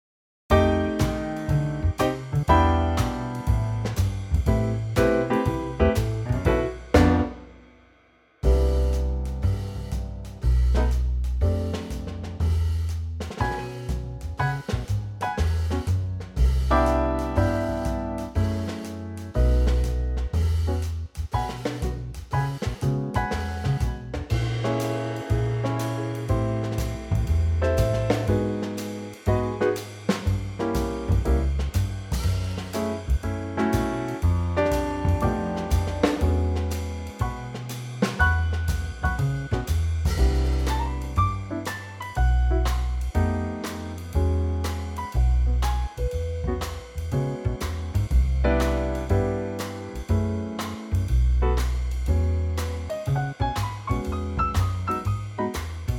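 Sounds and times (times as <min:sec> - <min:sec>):
trio backing track: 0:00.5 - 0:07.7, 0:08.4 - 0:55.9.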